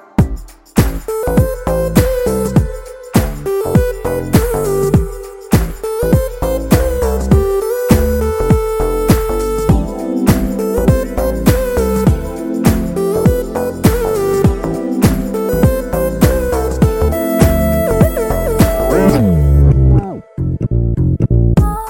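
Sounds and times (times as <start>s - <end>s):
instrumental tone: 0.0s - 21.7s.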